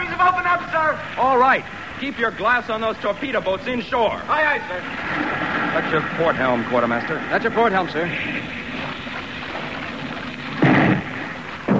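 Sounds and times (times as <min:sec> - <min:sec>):
speech: 0:00.2 - 0:08.6
warship broadside cannon fire: 0:10.5 - 0:11.7.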